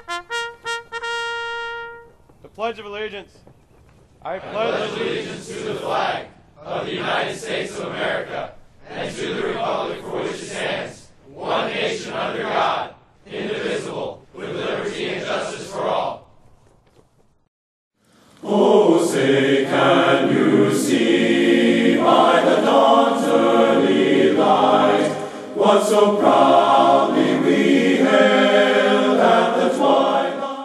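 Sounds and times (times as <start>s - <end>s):
men's chorus singing: 4.3s - 16.2s, 18.4s - 30.6s.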